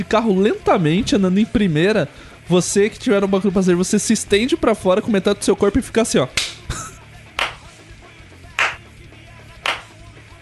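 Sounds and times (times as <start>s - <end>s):
speech: 0.0s - 6.6s
slow sarcastic hand clapping: 6.4s - 6.7s, 7.4s - 7.7s, 8.6s - 8.9s, 9.6s - 10.0s.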